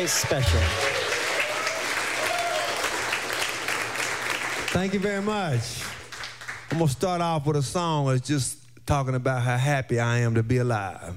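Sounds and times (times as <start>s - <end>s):
speech: 0.0s - 1.0s, 4.7s - 6.0s, 6.7s - 11.1s
audience applause welcoming a performer to a live radio show: 0.0s - 6.8s.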